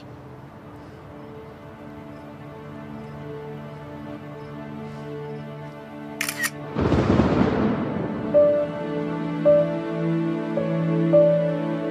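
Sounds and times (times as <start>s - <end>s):
music with sustained tones: 0.0s - 11.8s
camera shutter taking a photo: 6.2s - 6.6s.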